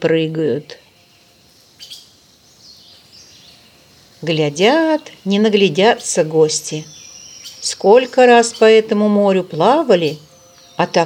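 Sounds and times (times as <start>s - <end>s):
speech: 0.0s - 0.8s, 4.2s - 7.0s, 7.6s - 11.0s
birds chirping and singing: 0.0s - 11.0s
faint hiss: 0.1s - 8.8s.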